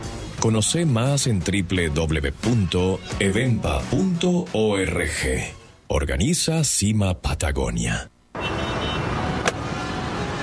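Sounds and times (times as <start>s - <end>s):
speech: 0.4s - 8.1s
car with a failing automatic gearbox droning: 8.3s - 10.4s.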